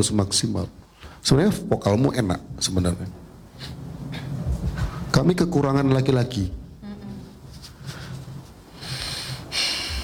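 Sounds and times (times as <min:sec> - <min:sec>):
speech: 0:00.0 - 0:03.8, 0:05.2 - 0:06.6
heavy breathing: 0:07.8 - 0:10.0.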